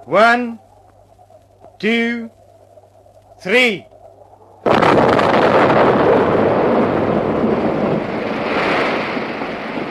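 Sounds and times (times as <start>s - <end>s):
speech: 0.0s - 0.6s, 1.8s - 2.4s, 3.4s - 3.9s
dam blown up with explosives: 4.6s - 9.8s.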